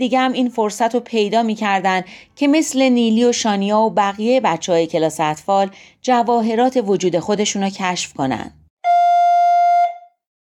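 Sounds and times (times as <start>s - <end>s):
speech: 0.0s - 8.6s
doorbell ringing: 8.9s - 10.1s.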